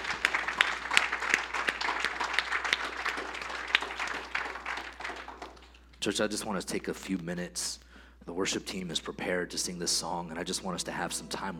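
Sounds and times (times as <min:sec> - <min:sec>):
audience applause: 0:00.0 - 0:05.9
speech: 0:06.0 - 0:11.5.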